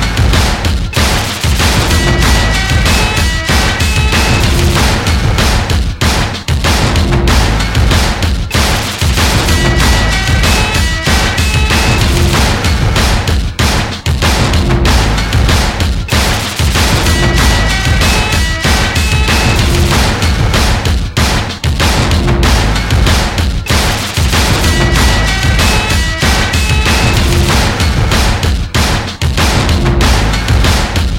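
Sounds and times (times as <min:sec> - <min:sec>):
music: 0:00.0 - 0:31.1.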